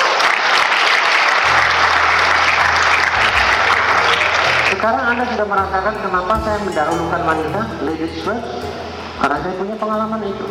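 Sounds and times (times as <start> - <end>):
audience applause: 0.0 - 5.4
low hum: 1.5 - 9.6
speech: 4.8 - 10.4.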